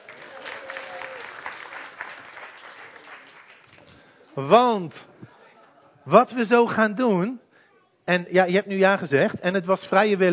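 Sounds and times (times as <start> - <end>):
audience applause: 0.0 - 4.2
speech: 4.4 - 5.2, 6.1 - 7.4, 8.1 - 10.3.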